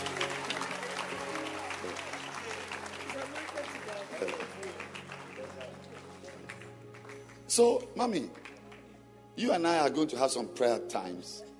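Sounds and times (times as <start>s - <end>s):
audience clapping hands: 0.0s - 9.0s
speech: 7.6s - 8.4s, 9.4s - 11.5s.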